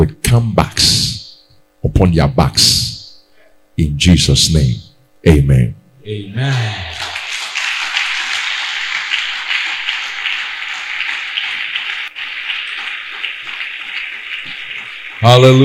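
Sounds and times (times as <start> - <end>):
speech: 0.0 - 1.1, 1.8 - 2.9, 3.8 - 7.0, 15.2 - 15.6
crowd clapping: 6.5 - 15.6.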